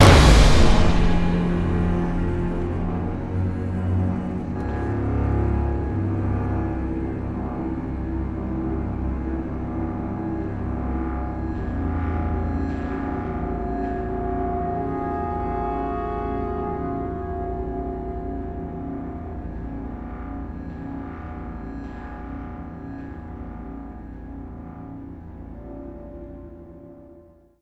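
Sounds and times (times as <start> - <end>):
long end musical sting: 0.0 - 21.6.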